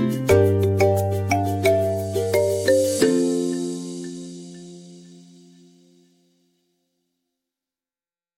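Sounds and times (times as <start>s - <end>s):
musical study: 0.0s - 6.4s.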